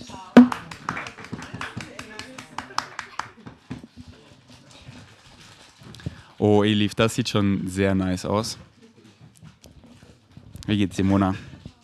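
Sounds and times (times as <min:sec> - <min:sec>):
group applauding: 0:00.4 - 0:03.4
speech: 0:06.4 - 0:08.7, 0:10.7 - 0:11.5.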